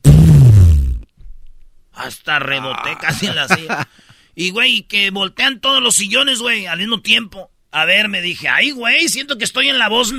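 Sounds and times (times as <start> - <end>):
loud fart sound effect: 0.0 - 1.1
speech: 2.1 - 10.1
laughter: 3.0 - 3.9.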